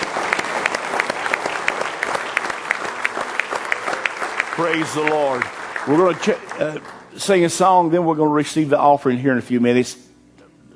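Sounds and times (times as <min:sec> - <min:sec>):
church congregation applauding during a morning service: 0:00.0 - 0:08.7
speech: 0:04.6 - 0:10.0.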